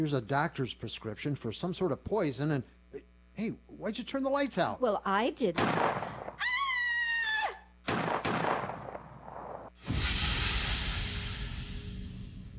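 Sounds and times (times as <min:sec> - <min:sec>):
speech: 0:00.0 - 0:06.5
gunshot in the dark: 0:05.6 - 0:06.4, 0:07.9 - 0:12.0.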